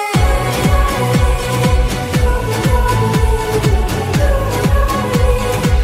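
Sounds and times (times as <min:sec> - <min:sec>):
French dance music ringtone: 0:00.1 - 0:05.8.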